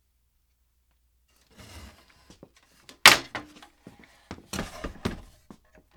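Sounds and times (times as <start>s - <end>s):
wooden ladder handling: 1.7s - 5.2s.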